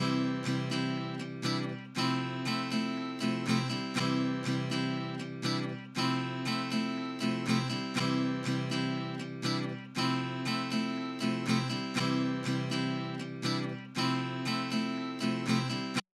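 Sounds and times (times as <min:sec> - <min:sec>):
acoustic guitar: 0:00.0 - 0:16.0.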